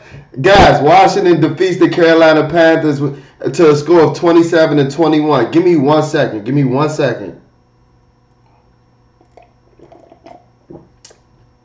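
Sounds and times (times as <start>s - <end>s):
speech: 0.3s - 7.4s
sip from a cup: 8.4s - 11.3s.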